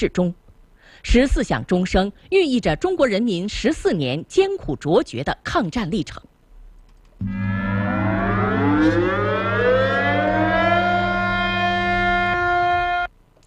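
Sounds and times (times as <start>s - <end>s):
speech: 0.0s - 6.3s, 7.2s - 7.5s
air-raid siren sounding across city: 7.2s - 13.1s
train horns: 7.2s - 13.1s.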